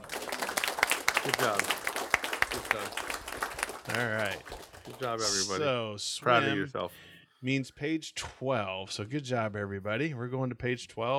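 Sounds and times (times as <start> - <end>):
applause: 0.0 - 5.6
speech: 1.2 - 1.8, 2.6 - 3.1, 3.9 - 11.1.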